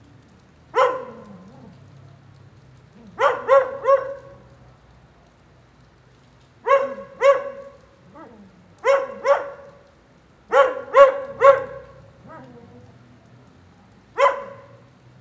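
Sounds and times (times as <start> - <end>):
rain: 0.0 - 15.2
dog barking: 0.7 - 1.8, 2.9 - 4.6, 6.6 - 13.0, 14.1 - 15.0.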